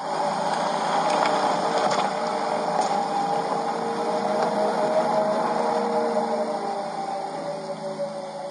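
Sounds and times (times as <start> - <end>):
car's artificial driving sound: 0.0 - 8.4.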